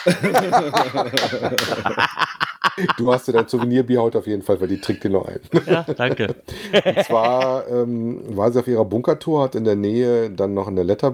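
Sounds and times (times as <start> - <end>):
hand clapping: 0.0 - 2.4
laughter: 0.0 - 4.0, 4.6 - 7.7
speech: 0.0 - 11.1.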